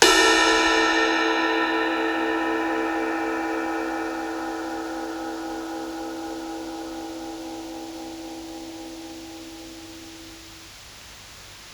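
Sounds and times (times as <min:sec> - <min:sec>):
psychedelic drums: 0:00.0 - 0:06.1
ride cymbal: 0:00.0 - 0:11.7.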